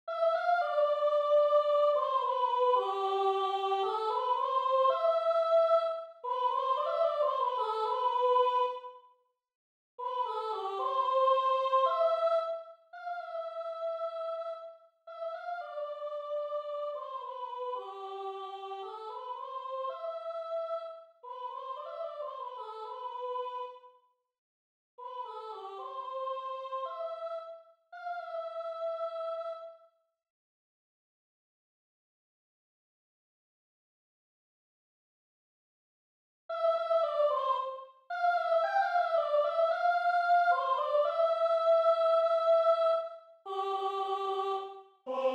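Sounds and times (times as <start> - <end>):
soprano singing: 0.1 - 8.9, 10.0 - 23.8, 25.0 - 29.8, 36.5 - 45.3.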